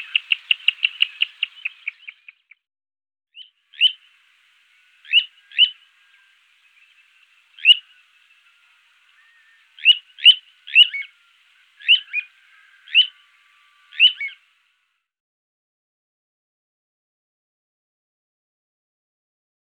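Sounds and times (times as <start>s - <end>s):
little ringed plover calling: 0.0s - 2.4s, 3.4s - 14.8s.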